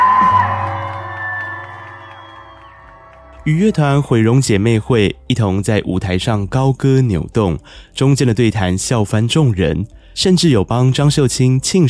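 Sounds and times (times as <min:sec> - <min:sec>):
high-pitched shrieks: 0:00.0 - 0:03.4
audience screaming and cheering: 0:00.0 - 0:04.2
speech: 0:03.4 - 0:11.8.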